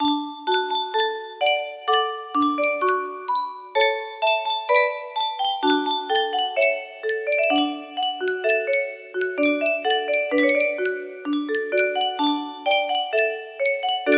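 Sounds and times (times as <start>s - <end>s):
music box melody: 0.0s - 14.1s.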